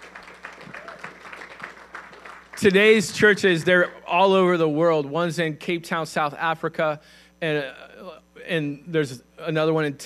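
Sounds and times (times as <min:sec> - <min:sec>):
audience applause: 0:00.0 - 0:03.0
speech: 0:02.6 - 0:10.0.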